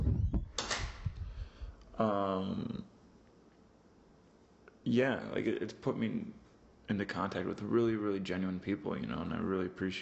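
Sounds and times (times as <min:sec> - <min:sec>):
door being closed: 0:00.0 - 0:01.2
speech: 0:02.0 - 0:02.9, 0:04.9 - 0:09.9.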